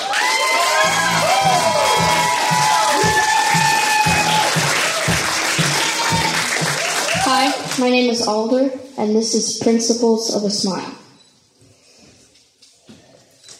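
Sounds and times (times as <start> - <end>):
whoops and high shouts: 0.0 - 5.1, 5.8 - 7.6
crowd clapping and cheering: 0.0 - 8.1
speech: 7.8 - 11.0.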